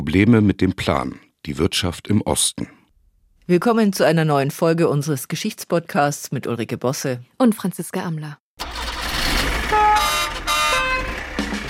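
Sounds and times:
speech: 0.0 - 2.8, 3.5 - 8.7
sky-blue Trabant driving in the rain: 8.6 - 11.6
Trabant car horn honking: 9.5 - 11.6.

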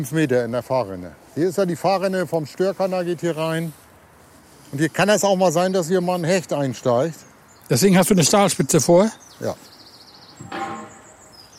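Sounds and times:
speech: 0.0 - 3.8, 4.7 - 9.7
banging and clattering from a small shipyard: 10.3 - 11.4.

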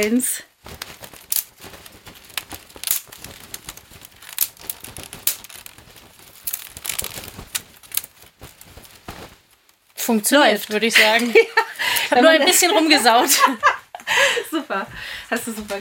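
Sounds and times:
speech: 0.0 - 0.8, 10.1 - 13.8, 14.5 - 15.7
foley fire crackling: 0.0 - 14.2.

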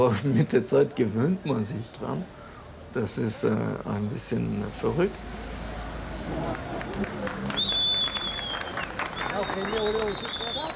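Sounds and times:
speech: 0.0 - 5.5, 6.3 - 7.0
crowd cheering at arrival outside a polling station on election day: 6.3 - 10.7.

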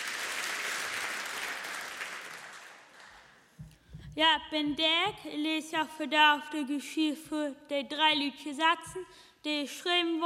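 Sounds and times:
audience applause: 0.0 - 3.4
speech: 4.2 - 10.2.

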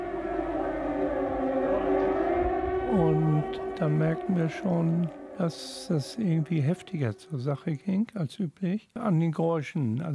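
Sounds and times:
air raid siren: 0.0 - 7.7
speech: 2.9 - 10.1.

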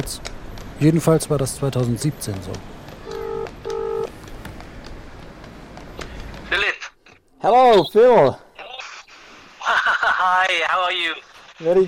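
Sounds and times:
speech: 0.0 - 2.8, 7.4 - 8.4, 11.0 - 11.8
touch tone beeps from a phone keypad: 3.1 - 4.1
laughter: 9.6 - 10.6.

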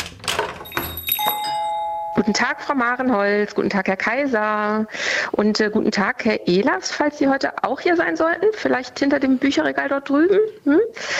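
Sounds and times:
shop doorbell ringing as a door opens: 0.6 - 3.7
speech: 2.2 - 11.1.

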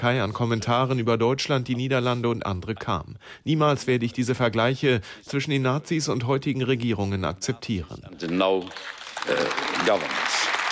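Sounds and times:
speech: 0.0 - 10.5
EU parliamentarians applauding in the European Parliament: 8.1 - 10.6.

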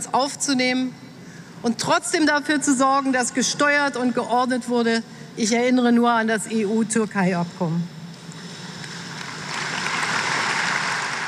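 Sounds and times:
speech: 0.0 - 8.0
sparse applause from party delegates: 8.8 - 11.2.

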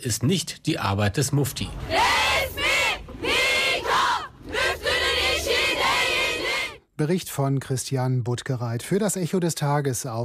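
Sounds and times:
speech: 0.0 - 2.2, 7.0 - 10.2
crowd of women protesters chanting a slogan in unison: 1.9 - 6.8.

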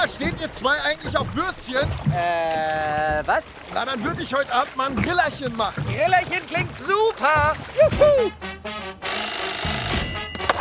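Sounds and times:
speech: 0.0 - 8.8
telephone ringing: 9.0 - 10.5.

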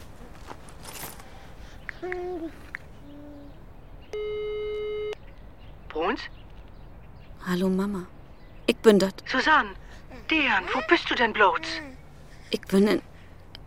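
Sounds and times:
speech: 2.0 - 2.7, 7.5 - 11.9, 12.5 - 13.1
telephone ringing tone during a call: 4.1 - 5.1.

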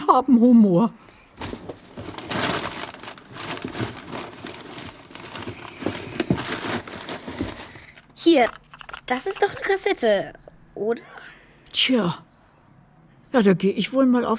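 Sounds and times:
speech: 0.1 - 1.7, 8.2 - 12.3, 13.3 - 14.3
hands rummaging through a cardboard box: 1.4 - 8.6.

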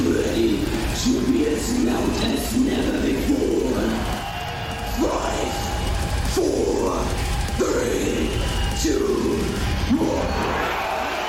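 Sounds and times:
heavy metal crowd at Wacken Open Air roaring a collective growl: 0.0 - 11.2.

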